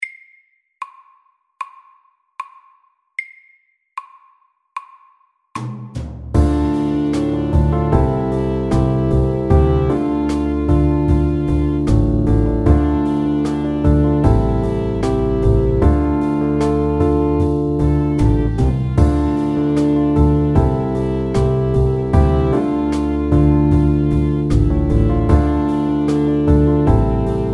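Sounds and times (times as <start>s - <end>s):
fast pop ballad: 6.4s - 27.5s.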